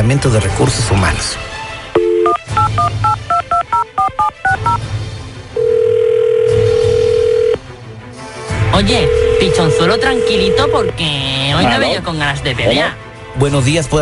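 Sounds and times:
speech: 0:00.0 - 0:01.5, 0:02.6 - 0:04.9, 0:08.7 - 0:14.0
steady sustained phone tone: 0:02.0 - 0:04.8, 0:05.6 - 0:07.6, 0:09.0 - 0:10.9
two-tone phone keypad beeps dialing a number: 0:02.0 - 0:04.8, 0:09.2 - 0:10.9.

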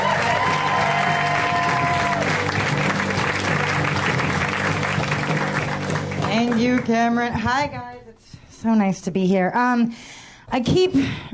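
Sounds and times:
audience applause greeting a comedian at a comedy show: 0:00.0 - 0:06.9
speech: 0:06.6 - 0:11.3.

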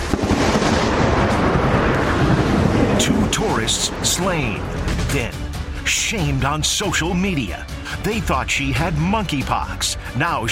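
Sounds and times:
lightning strike thunderclap outside the White House: 0:00.0 - 0:05.8
speech: 0:03.4 - 0:10.5.

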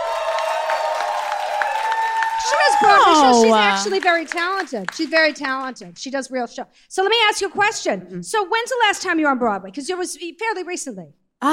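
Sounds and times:
bursts of cheering: 0:00.0 - 0:04.4
audience applause: 0:00.0 - 0:05.4
speech: 0:02.5 - 0:11.5.

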